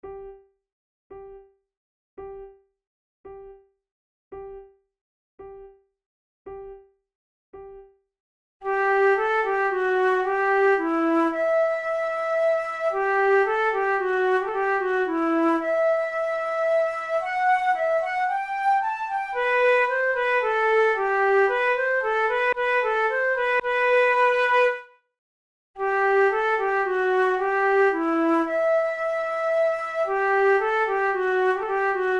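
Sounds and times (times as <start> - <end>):
flute duet playing tunes: 8.6 - 24.9, 25.8 - 32.1.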